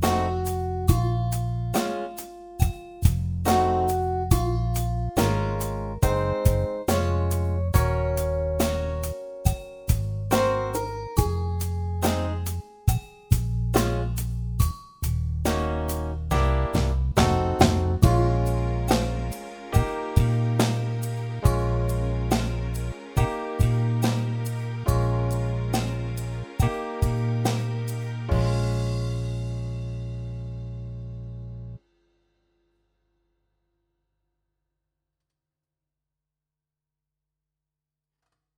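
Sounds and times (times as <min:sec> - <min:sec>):
drums: 0:00.0 - 0:30.8.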